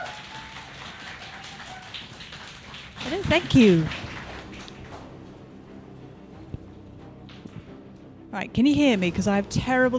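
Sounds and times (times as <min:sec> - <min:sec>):
audience applause: 0:00.0 - 0:05.2
speech: 0:03.0 - 0:04.0, 0:08.4 - 0:09.9.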